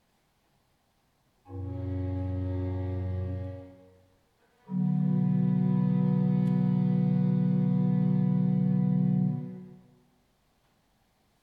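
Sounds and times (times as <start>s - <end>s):
adagio concerto for strings in D major: 1.5s - 9.9s.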